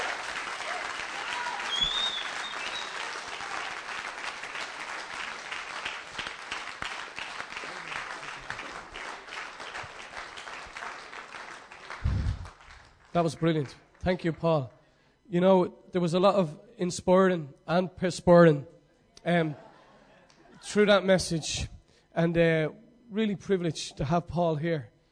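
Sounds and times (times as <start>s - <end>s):
scattered cheers: 0.0s - 4.0s
crowd clapping: 0.0s - 14.4s
high whistle: 1.2s - 3.2s
speech: 13.2s - 19.6s, 20.6s - 24.9s.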